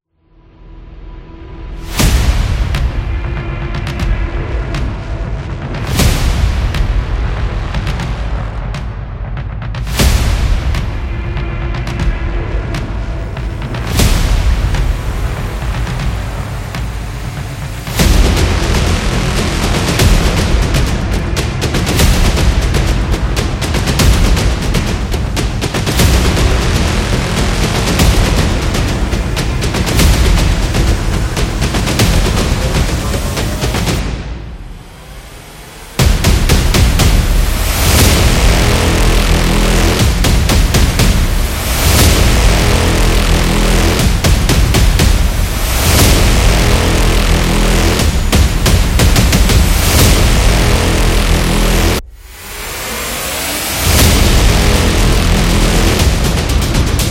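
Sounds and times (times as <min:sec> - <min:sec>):
trailer drums: 0:01.0 - 0:57.0.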